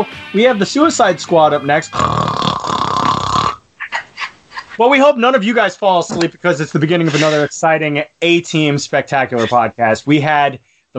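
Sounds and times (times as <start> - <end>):
speech: 0.0 - 2.4, 4.8 - 10.9
loud rattling snore: 2.0 - 3.6.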